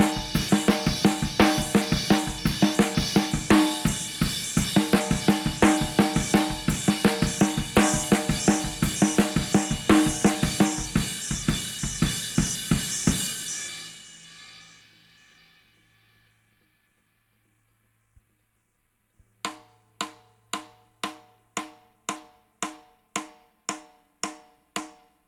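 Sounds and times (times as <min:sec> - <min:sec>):
drums: 0:00.0 - 0:16.0.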